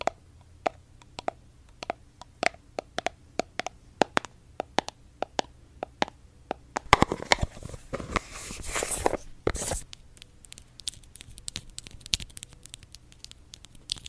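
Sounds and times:
faint low hum: 0.0s - 14.0s
sharp crisp ASMR taps: 0.0s - 14.0s
scratching rustling texture: 6.9s - 14.0s.

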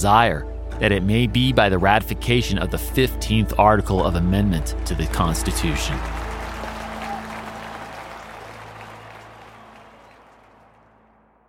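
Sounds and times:
speech: 0.0s - 6.2s
crowd cheering: 4.8s - 11.0s.

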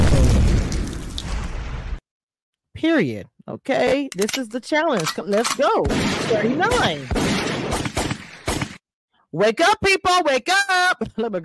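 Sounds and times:
explosion sound effect of bursting flames: 0.0s - 2.0s
speech: 2.8s - 7.3s, 9.3s - 11.4s.

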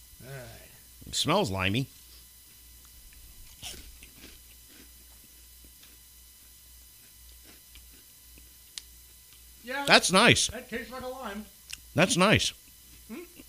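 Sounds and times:
speech: 1.1s - 2.0s, 9.9s - 13.3s
crunching of vanilla lime wafers from Brazil: 3.4s - 6.0s.

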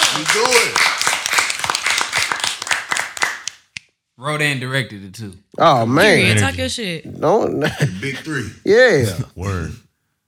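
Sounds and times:
clapping: 0.0s - 3.8s
speech: 4.2s - 9.8s.

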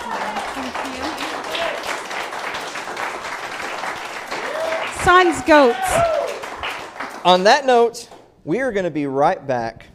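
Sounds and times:
round of applause: 0.0s - 7.6s
speech: 5.0s - 6.2s, 7.2s - 9.9s.

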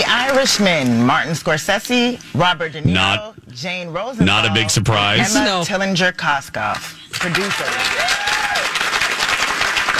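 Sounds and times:
speech: 0.4s - 8.2s
crowd applause: 7.1s - 9.9s.

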